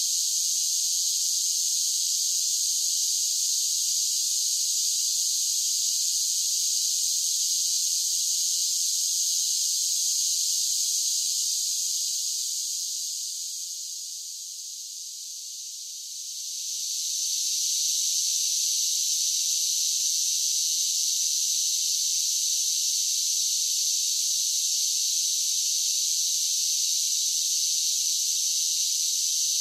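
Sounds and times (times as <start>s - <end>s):
large groups of cicadas singing and buzzing: 0.0s - 14.1s, 16.4s - 29.5s.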